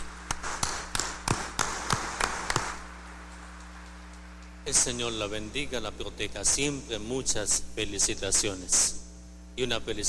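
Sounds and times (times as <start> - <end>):
audience applause of congratulation: 0.0 - 4.1
speech: 4.7 - 9.0, 9.6 - 10.0.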